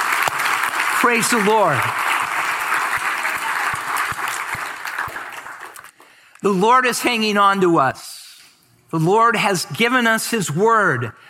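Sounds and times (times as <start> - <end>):
audience clapping: 0.0 - 6.2
speech: 1.0 - 2.1, 6.4 - 8.1, 8.9 - 11.1.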